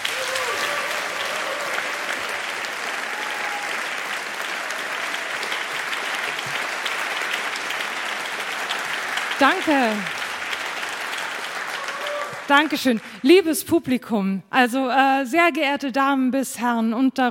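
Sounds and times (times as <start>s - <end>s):
audience applause: 0.0s - 13.3s
speech: 9.4s - 10.2s, 12.5s - 17.2s.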